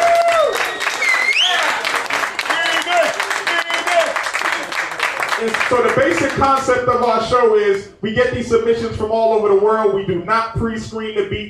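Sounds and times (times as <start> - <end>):
audience applause: 0.0 - 6.8
speech: 5.4 - 11.4.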